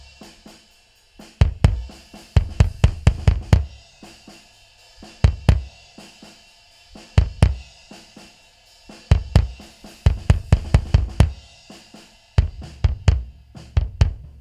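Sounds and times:
drums: 0.0 - 14.3
kick drum: 1.3 - 4.0, 5.1 - 5.8, 7.0 - 7.8, 9.1 - 11.6, 12.4 - 14.3.

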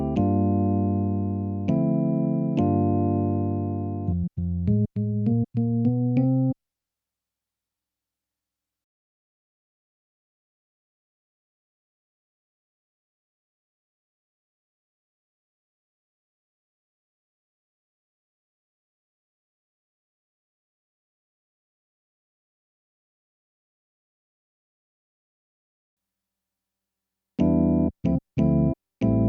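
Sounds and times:
keyboard playing: 0.0 - 6.6, 27.4 - 29.2.

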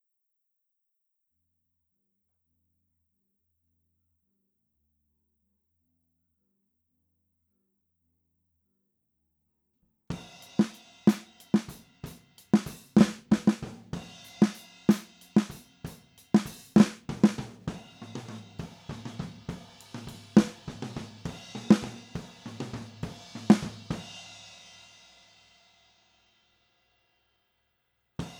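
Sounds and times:
snare drums recorded with an SM57 microphone: 10.1 - 24.4.

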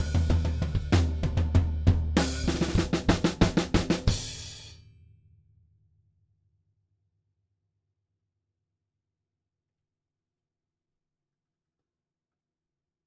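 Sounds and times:
drums: 0.0 - 4.8.

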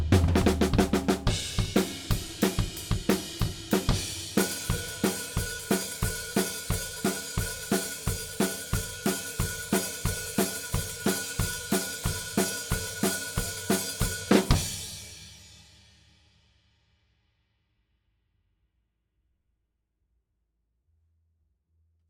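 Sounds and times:
drums: 0.0 - 16.9.

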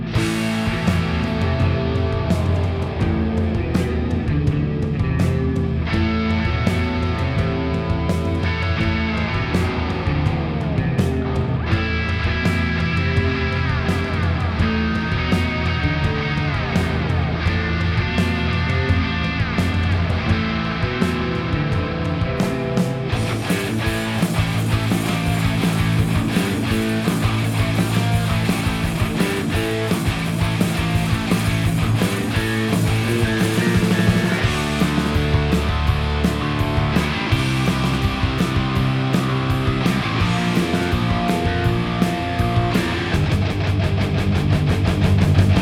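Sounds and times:
instrumental mix: 0.1 - 45.5.

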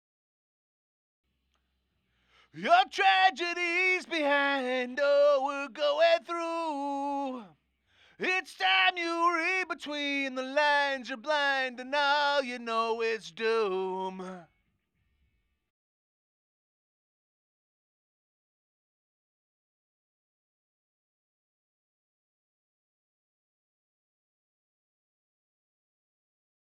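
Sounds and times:
vocal verses: 2.3 - 14.5.

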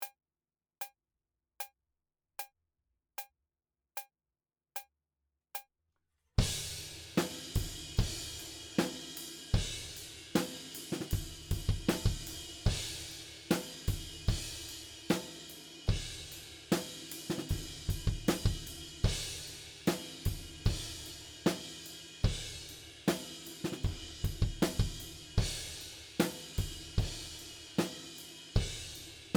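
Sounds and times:
drums: 6.4 - 29.3.

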